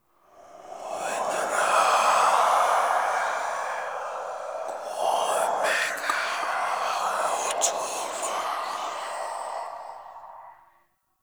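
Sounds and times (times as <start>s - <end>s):
person whispering: 0.7s - 2.8s, 3.6s - 10.5s.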